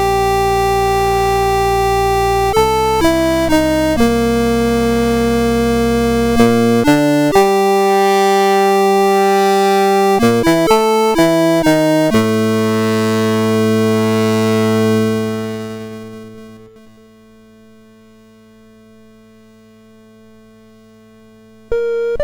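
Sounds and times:
8-bit SID MOS6581R2 chiptune music: 0:00.0 - 0:16.8, 0:21.7 - 0:22.2.

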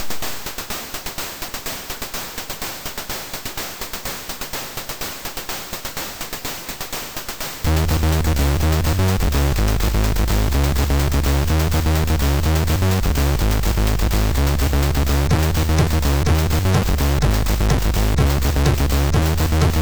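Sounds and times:
house mix on MOS6581R2 SID chip: 0:07.7 - 0:19.8.

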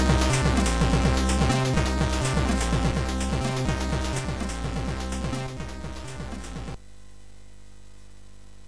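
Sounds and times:
chiptune remix on MOS 6581R4 SID chip: 0:00.0 - 0:06.8.

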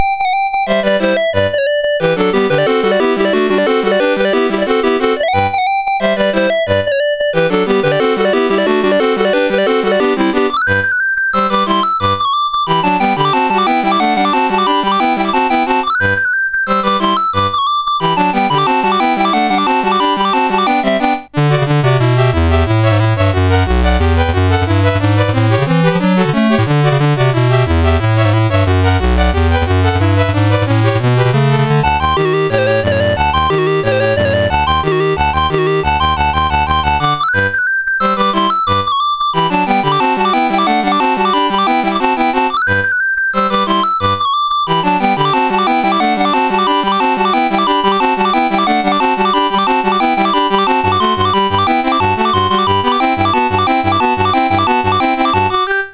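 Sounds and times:
dance piece played on CSG8580R5 sound chip: 0:00.0 - 0:55.9.

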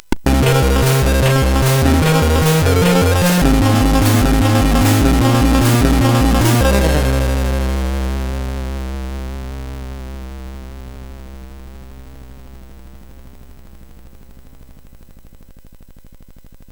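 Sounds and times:
MOS6581R4 SID chip game music: 0:00.2 - 0:08.7.

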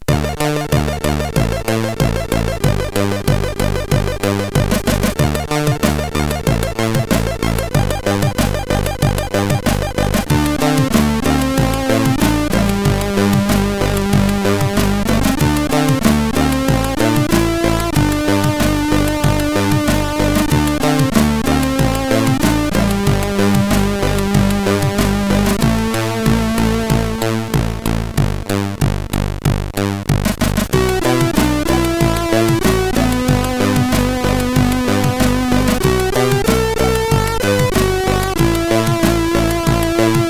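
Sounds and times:
chiptune intro on CSG8580R5 SID chip: 0:00.0 - 0:40.2.

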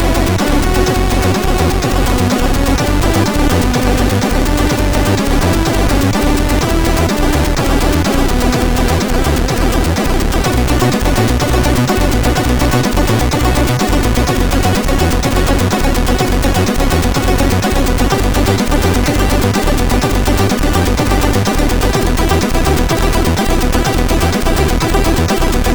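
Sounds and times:
SID CSG8580R5 chip intro tune: 0:00.0 - 0:25.7.

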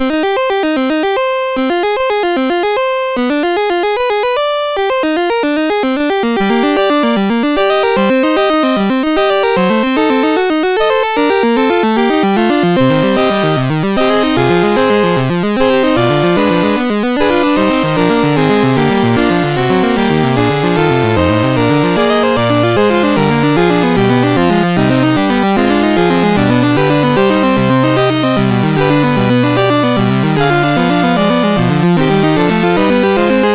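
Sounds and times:
fugue in C minor on MOS6581R3 sound chip: 0:00.0 - 0:33.5.

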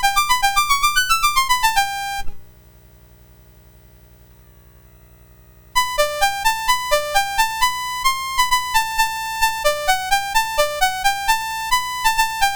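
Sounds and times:
piano on MOS6581R4 sound chip: 0:00.0 - 0:02.4, 0:05.8 - 0:12.5.

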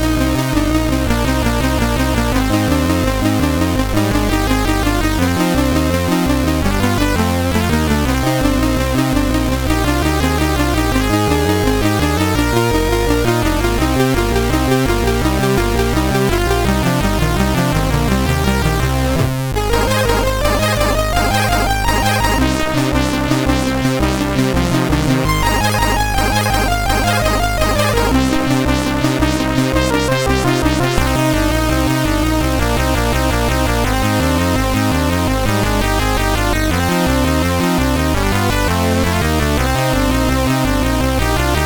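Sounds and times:
loader music on a SID MOS6581R3 sound chip: 0:00.0 - 0:41.6.

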